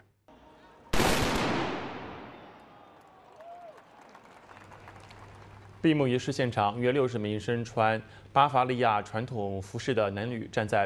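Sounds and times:
black powder gunshot salute: 1.0s - 2.7s
speech: 5.8s - 10.8s.

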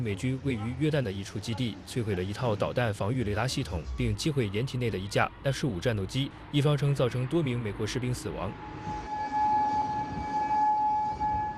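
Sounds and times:
speech: 0.0s - 9.0s
air raid siren in Kuwait: 3.7s - 11.5s.

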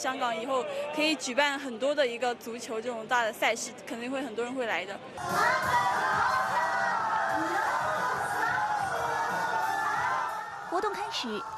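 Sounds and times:
speech: 0.0s - 6.6s, 10.7s - 11.5s
fans cheering: 5.2s - 11.5s.

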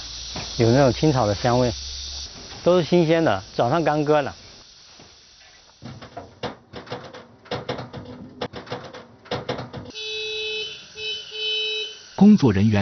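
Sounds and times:
speech: 0.6s - 1.9s, 2.6s - 4.4s, 12.2s - 12.8s
horn honking to call deer to feed: 9.9s - 12.4s.

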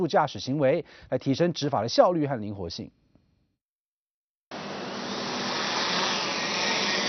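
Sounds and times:
speech: 0.0s - 3.0s
police drone taking off and buzzing: 4.5s - 7.0s.

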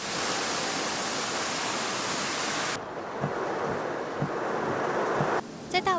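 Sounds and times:
heavy rainstorm outside Tai Wai station: 0.0s - 5.9s.

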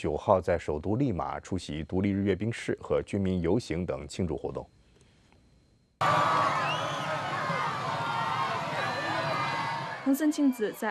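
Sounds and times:
speech: 0.0s - 4.8s, 6.0s - 6.6s, 10.0s - 10.8s
supporters cheering along the street: 6.0s - 10.8s.

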